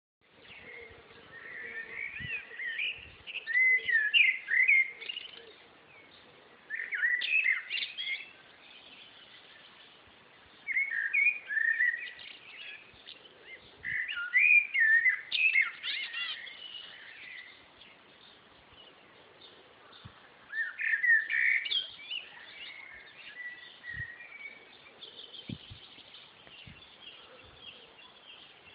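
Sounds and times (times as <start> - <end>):
blackbird singing: 0.4 - 28.7.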